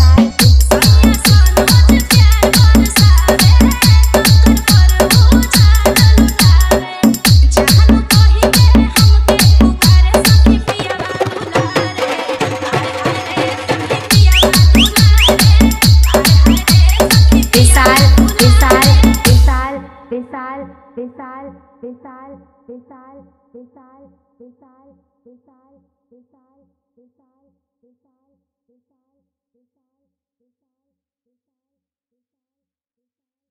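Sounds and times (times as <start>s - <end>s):
Bhojpuri DJ music: 0.0s - 20.1s.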